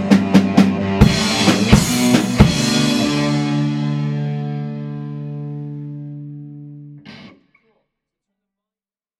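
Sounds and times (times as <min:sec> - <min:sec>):
modulated soloing: 0:00.6 - 0:07.8.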